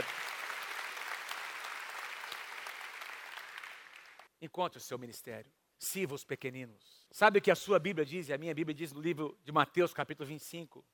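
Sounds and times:
audience applause: 0.0s - 4.3s
speech: 4.4s - 10.9s.

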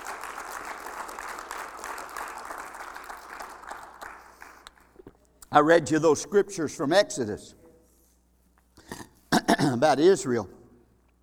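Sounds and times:
audience hand clapping: 0.0s - 5.1s
speech: 5.5s - 7.6s, 9.8s - 10.6s.

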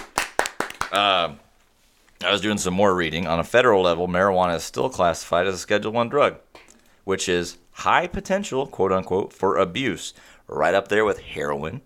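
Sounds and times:
applause: 0.0s - 1.2s
speech: 0.9s - 1.4s, 2.2s - 6.4s, 7.0s - 11.8s.

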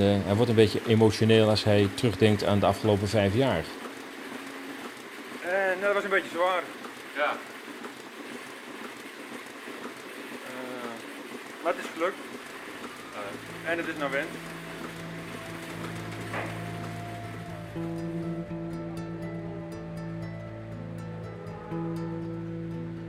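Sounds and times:
speech: 0.0s - 3.8s, 5.5s - 7.5s, 11.6s - 12.3s, 13.2s - 14.6s
cows being milked in a milking parlour: 0.0s - 18.0s.

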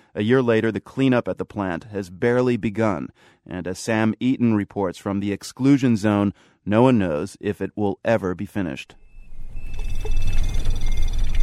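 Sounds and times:
speech: 0.2s - 9.0s
Geiger counter alarms going off: 9.0s - 11.4s.

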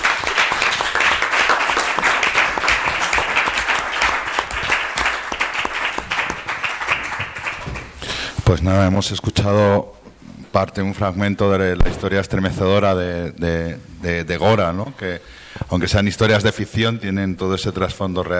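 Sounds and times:
audience applause: 0.0s - 8.1s
speech: 8.5s - 10.0s, 10.6s - 18.3s.

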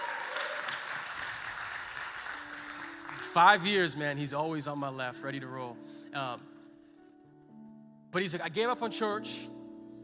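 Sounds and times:
audience applause at a church anniversary gathering: 0.0s - 4.0s
speech: 3.4s - 6.5s, 8.1s - 9.6s.

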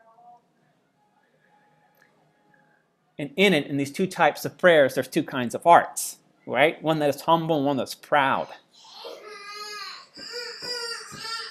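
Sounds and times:
speech: 3.2s - 8.9s
young boy crying: 8.8s - 11.4s.

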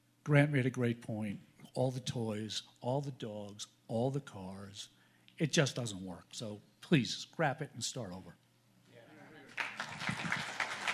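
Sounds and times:
speech: 0.2s - 8.4s
audience clapping after a public comment: 9.5s - 10.9s.

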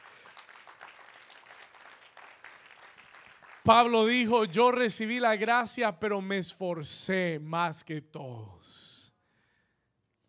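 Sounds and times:
audience applauding: 0.0s - 4.2s
speech: 3.6s - 8.9s.

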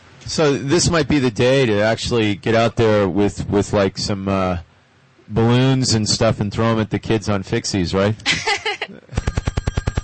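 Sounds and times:
speech: 0.3s - 4.7s, 5.3s - 9.2s
laughter: 8.3s - 9.3s
brief higher electronic tone: 9.2s - 10.0s
telephone ringing with an incoming call: 9.2s - 10.0s.

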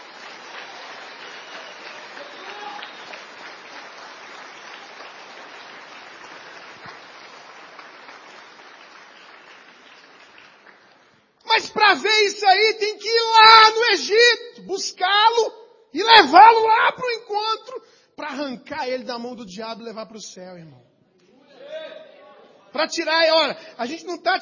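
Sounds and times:
audience applause: 0.0s - 11.4s
speech: 11.6s - 20.8s, 22.8s - 24.3s.

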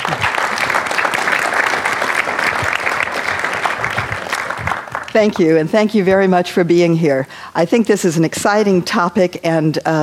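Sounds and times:
audience applause at a public talk on direct democracy: 0.0s - 5.5s
speech: 5.2s - 10.0s.

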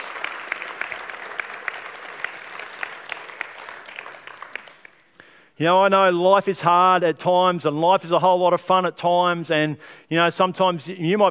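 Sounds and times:
crowd clapping: 0.0s - 5.2s
speech: 5.6s - 11.2s.

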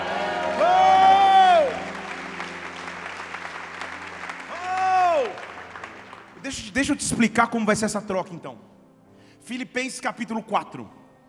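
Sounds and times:
high sustained shout: 0.0s - 2.1s, 4.5s - 5.5s
audience clapping and cheering: 0.0s - 6.9s
speech: 6.8s - 8.7s, 9.5s - 11.0s.

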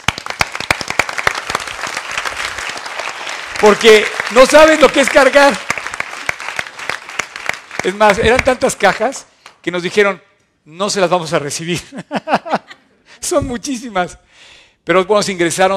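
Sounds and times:
audience applause: 0.0s - 9.1s
speech: 3.6s - 5.7s, 7.8s - 15.7s
laughter: 11.8s - 13.1s.

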